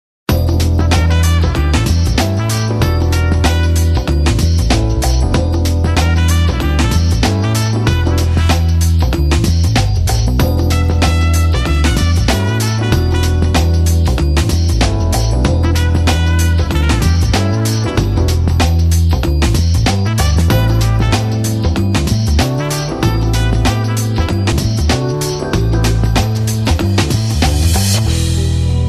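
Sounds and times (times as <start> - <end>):
cheerful background music: 0.3 - 28.8.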